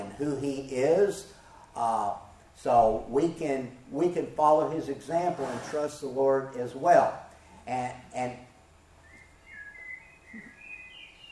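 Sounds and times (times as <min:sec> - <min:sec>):
soft hiss: 0:00.0 - 0:11.3
speech: 0:00.2 - 0:08.4
birds singing at dawn: 0:09.0 - 0:11.3.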